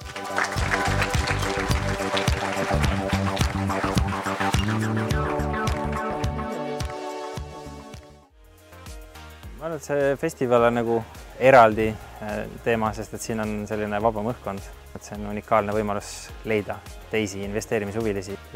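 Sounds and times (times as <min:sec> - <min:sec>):
audience applause: 0:00.0 - 0:06.4
speech: 0:09.8 - 0:18.5.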